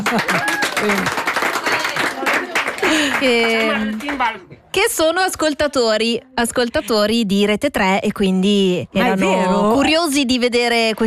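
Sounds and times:
applause from school class: 0.0 - 4.4
speech: 0.1 - 1.3, 3.2 - 11.0.

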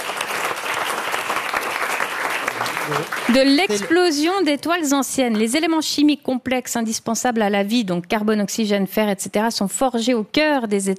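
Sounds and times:
audience applause: 0.0 - 4.2
speech: 2.9 - 10.9.

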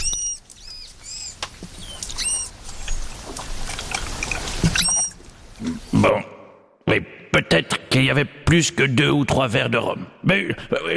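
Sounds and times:
manatee calling with squeaky chirps: 0.0 - 3.2, 3.8 - 5.3
steady hiss of noise: 0.0 - 10.9
speech: 7.0 - 10.9.

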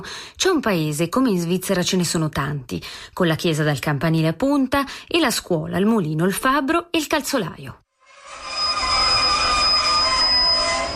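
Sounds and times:
speech: 0.0 - 7.8
train wheels squealing stopping at a small station: 8.1 - 10.9.

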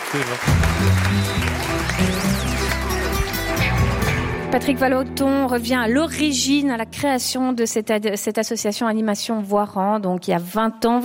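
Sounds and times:
applause: 0.0 - 4.1
speech: 0.1 - 2.9, 4.5 - 11.0.

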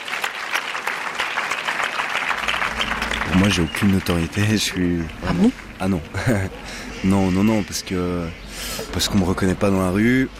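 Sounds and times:
audience applauding: 0.0 - 5.8
speech: 3.4 - 10.3.

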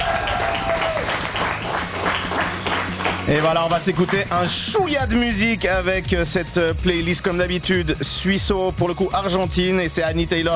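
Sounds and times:
applause: 0.0 - 4.6
speech: 3.3 - 10.5.

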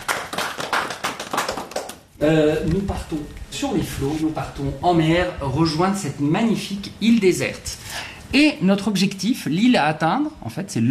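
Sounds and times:
audience applauding a team: 0.0 - 2.2
speech: 2.2 - 10.8.

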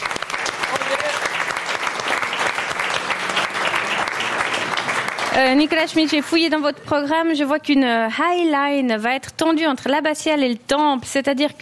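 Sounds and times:
applause: 0.0 - 6.6
speech: 5.4 - 11.6.

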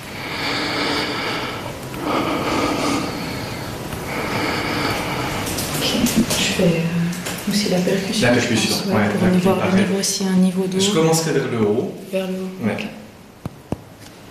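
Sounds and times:
patient's deep open-mouthed breathing during lung auscultation: 0.0 - 6.4
speech: 6.6 - 6.9, 7.7 - 13.0.

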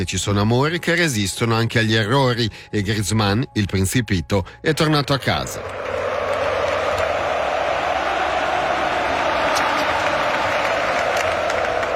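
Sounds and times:
speech: 0.0 - 6.0
stadium fans applauding: 5.0 - 11.9.

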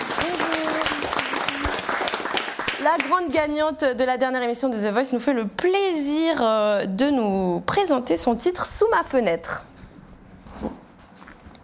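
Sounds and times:
audience applause: 0.0 - 3.2
speech: 2.9 - 9.7.

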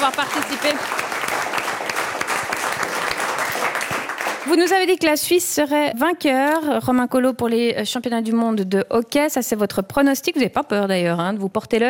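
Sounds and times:
audience applause: 0.0 - 4.6
speech: 0.1 - 1.5, 4.4 - 11.8.

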